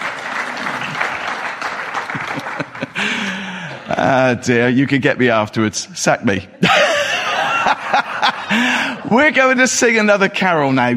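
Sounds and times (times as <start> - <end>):
audience applause: 0.0 - 3.9
laughter: 0.5 - 4.6, 6.6 - 10.0
speech: 4.0 - 6.8, 8.5 - 10.9.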